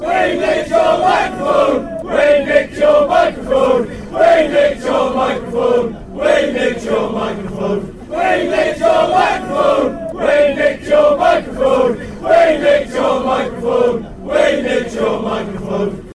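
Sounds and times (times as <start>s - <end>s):
chanting: 0.0s - 16.1s.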